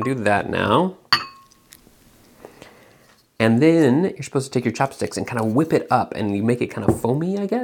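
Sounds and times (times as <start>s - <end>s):
speech: 0.0s - 1.3s, 3.4s - 7.6s
rice bowl clinking while pouring soy sauce: 1.1s - 1.8s.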